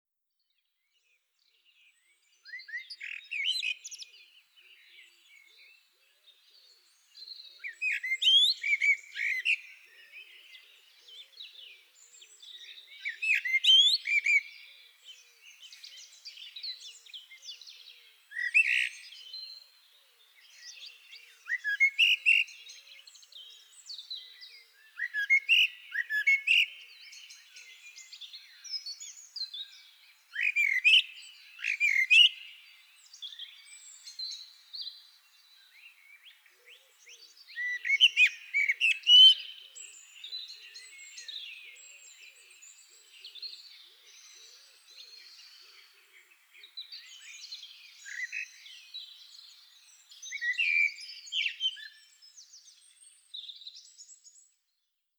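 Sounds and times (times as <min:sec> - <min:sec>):
Turdus merula singing: 0:01.6 - 0:19.7, 0:20.4 - 0:54.5.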